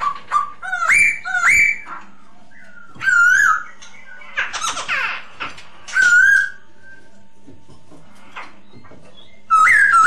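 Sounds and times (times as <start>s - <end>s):
masked laughingthrush whistled lure song: 0.0s - 5.0s, 5.9s - 7.2s, 8.6s - 10.0s.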